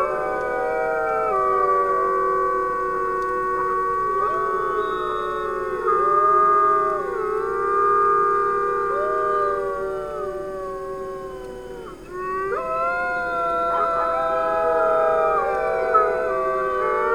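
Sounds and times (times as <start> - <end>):
low sustained coyote or wolf howl: 0.0 - 17.1.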